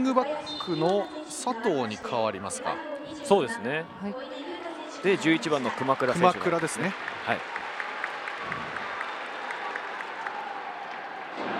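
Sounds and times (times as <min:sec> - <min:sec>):
speech: 0:00.0 - 0:07.6
faint stadium crowd applause at a football match in Kofu: 0:05.0 - 0:11.5.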